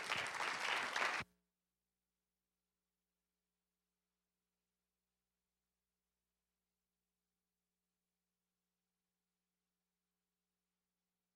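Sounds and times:
audience applause: 0:00.0 - 0:01.2.

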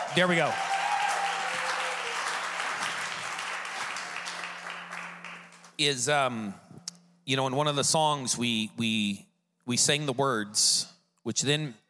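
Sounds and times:
audience applause: 0:00.0 - 0:05.8
speech: 0:00.2 - 0:00.7, 0:05.8 - 0:06.6, 0:07.2 - 0:11.8.

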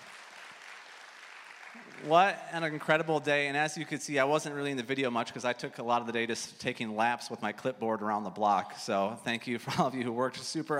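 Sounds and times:
audience applause at an event: 0:00.0 - 0:03.1
speech: 0:01.8 - 0:10.7.

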